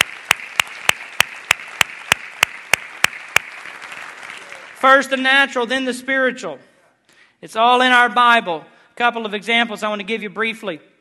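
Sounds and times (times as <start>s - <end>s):
audience applause: 0.0s - 5.0s
speech: 4.8s - 6.7s, 7.4s - 10.9s.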